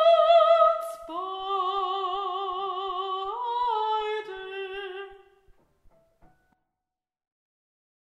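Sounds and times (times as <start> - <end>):
G major vocal backing track: 0.0 - 5.6.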